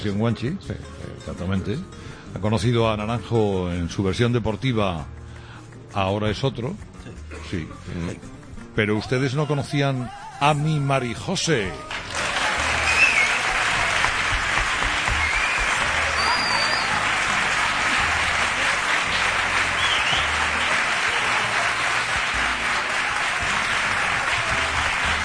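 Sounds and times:
speech: 0:00.0 - 0:05.2, 0:05.9 - 0:12.2
audience ovation applause: 0:11.9 - 0:25.2.

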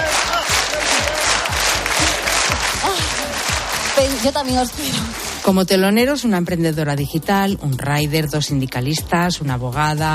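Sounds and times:
large crowd cheering and chanting at rally: 0:00.0 - 0:05.4
speech: 0:04.2 - 0:10.1.

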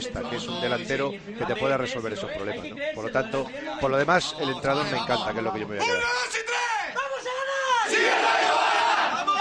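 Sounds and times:
speech: 0:00.0 - 0:06.6
football fans' chanted battle cry: 0:07.8 - 0:09.3.

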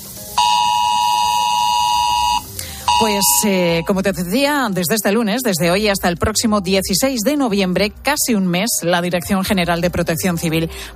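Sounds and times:
mobile phone emergency alert tone: 0:00.4 - 0:03.9
speech: 0:03.0 - 0:10.9.

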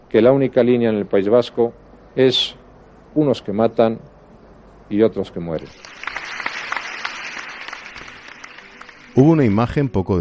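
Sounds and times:
speech: 0:00.1 - 0:02.6, 0:03.2 - 0:04.1, 0:04.9 - 0:06.0, 0:09.2 - 0:10.1
audience applause after a speech by José María Aznar: 0:05.7 - 0:09.6.

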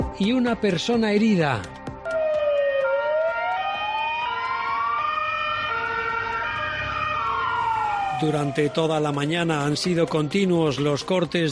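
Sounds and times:
speech: 0:00.2 - 0:01.8, 0:08.2 - 0:11.5
police sirens: 0:02.1 - 0:10.6.

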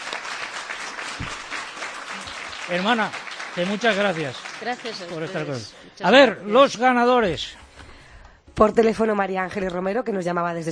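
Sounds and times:
audience applause greeting a guest's arrival: 0:00.0 - 0:05.8
speech: 0:02.7 - 0:07.6, 0:08.6 - 0:10.7.

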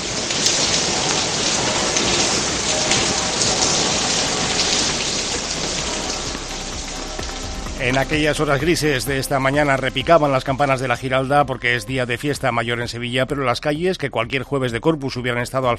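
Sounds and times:
heavy rain pouring: 0:00.0 - 0:11.4
speech: 0:07.9 - 0:15.7.

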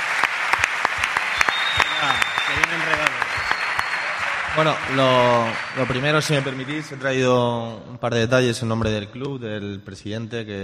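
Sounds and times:
audience applause: 0:00.0 - 0:07.5
speech: 0:02.0 - 0:03.1, 0:04.6 - 0:10.6.

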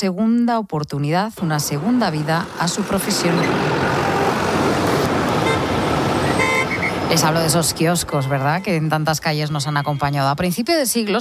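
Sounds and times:
speech: 0:00.0 - 0:04.4, 0:07.1 - 0:11.1
city street traffic: 0:01.4 - 0:11.1
car horn: 0:02.8 - 0:10.3.

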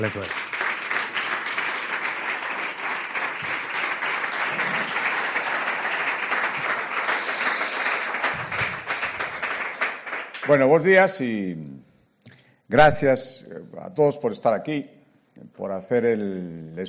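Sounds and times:
speech: 0:00.0 - 0:00.5, 0:10.5 - 0:11.9, 0:12.7 - 0:15.0, 0:15.6 - 0:16.8
crowd applause: 0:00.0 - 0:10.6.

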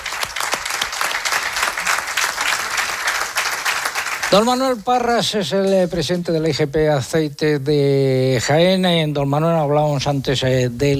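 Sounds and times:
audience applause: 0:00.0 - 0:05.1
speech: 0:04.3 - 0:10.9.

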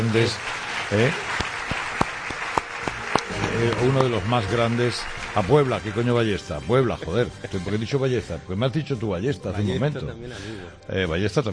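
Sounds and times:
audience applause for a guest at a live talk: 0:00.0 - 0:06.4
speech: 0:00.1 - 0:01.4, 0:03.6 - 0:11.5.

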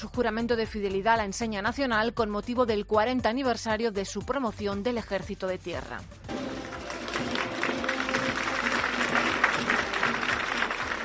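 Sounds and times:
speech: 0:00.0 - 0:06.5
applause after flag oath ceremony: 0:06.3 - 0:11.0.

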